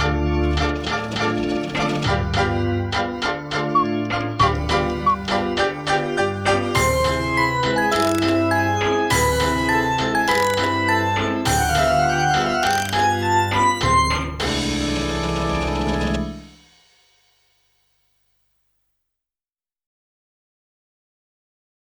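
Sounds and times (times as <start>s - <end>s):
instrumental music: 0.0s - 16.9s.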